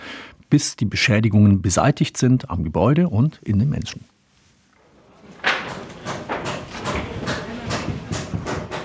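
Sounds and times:
speech: 0.5s - 4.1s
hammering on a roof: 5.4s - 8.8s.

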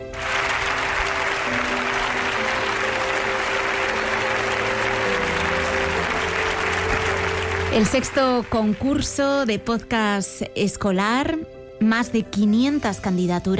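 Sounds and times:
large audience standing applause: 0.0s - 9.2s
speech: 7.8s - 13.5s.

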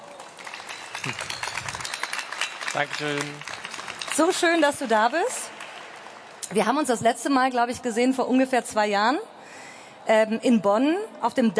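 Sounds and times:
studio audience applause at a German arts-and-science show: 0.0s - 6.4s
speech: 2.8s - 3.6s, 4.2s - 5.4s, 6.5s - 9.3s, 10.0s - 11.5s.

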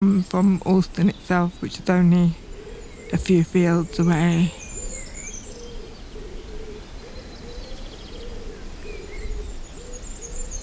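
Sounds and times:
speech: 0.1s - 2.4s, 3.1s - 4.6s
pigeon cooing: 3.8s - 10.6s.

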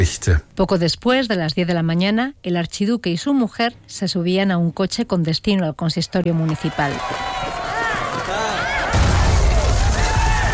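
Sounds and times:
speech: 0.0s - 7.6s
small bomb exploding: 8.9s - 10.5s.

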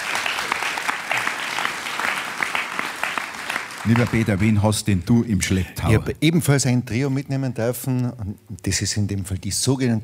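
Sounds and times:
audience applause: 0.0s - 4.7s
speech: 3.8s - 10.0s.

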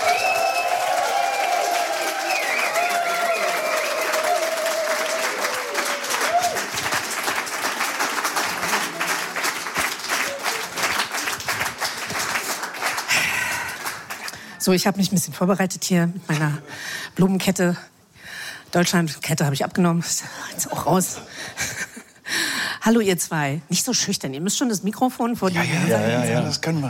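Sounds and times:
audience applause and cheering: 0.0s - 14.3s
speech: 14.6s - 17.9s, 18.7s - 21.6s, 22.9s - 26.8s.

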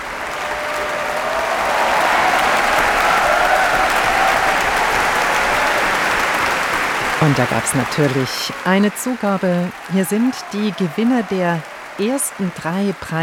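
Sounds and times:
audience applause in a hall after a prize-winners' orchestral concert: 0.0s - 13.2s
speech: 7.2s - 13.2s.

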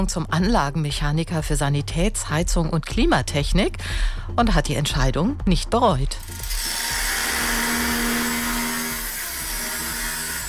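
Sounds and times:
speech: 0.0s - 6.8s
power tool on metal at a construction site: 6.2s - 10.4s.

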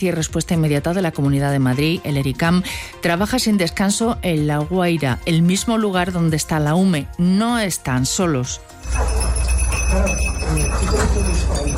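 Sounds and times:
speech: 0.0s - 11.7s
small bells on search-and-rescue dogs jingling: 8.8s - 11.7s.

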